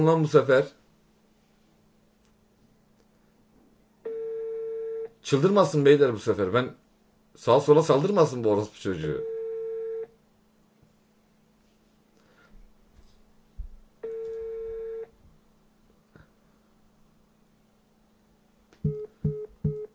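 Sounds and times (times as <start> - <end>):
speech: 0.0 - 0.8, 5.2 - 6.8, 7.4 - 9.3
telephone call tones: 4.1 - 5.2, 9.2 - 10.1, 14.0 - 15.1, 18.8 - 19.9
beeps and clicks: 18.8 - 19.9.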